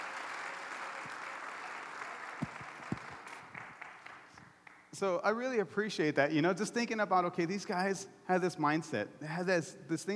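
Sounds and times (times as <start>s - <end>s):
audience applause: 0.0s - 4.8s
speech: 5.0s - 10.1s.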